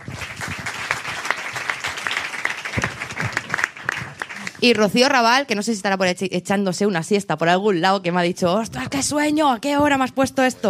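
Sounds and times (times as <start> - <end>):
audience applause: 0.0 - 4.8
speech: 4.6 - 10.6.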